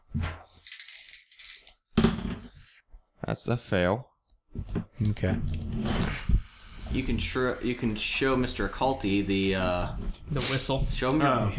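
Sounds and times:
dice rolling: 0:00.6 - 0:01.8
speech: 0:03.3 - 0:06.2, 0:06.9 - 0:11.5.

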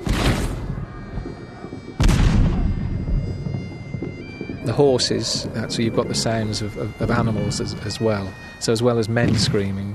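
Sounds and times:
heavy cannon blasts: 0:00.0 - 0:01.2, 0:02.0 - 0:04.0
speech: 0:04.7 - 0:09.9.

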